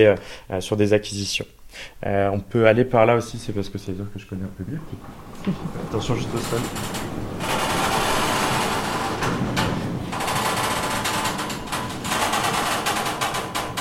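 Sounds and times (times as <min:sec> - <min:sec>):
speech: 0:00.0 - 0:07.6
sliding art storage rack pulled along its rail: 0:04.5 - 0:13.7.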